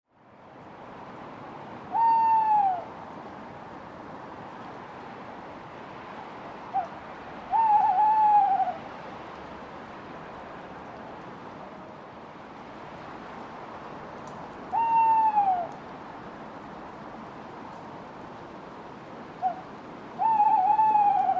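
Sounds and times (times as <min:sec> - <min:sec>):
owl hooting: 0:01.9 - 0:02.9, 0:07.5 - 0:08.8, 0:14.7 - 0:15.7, 0:20.2 - 0:21.3.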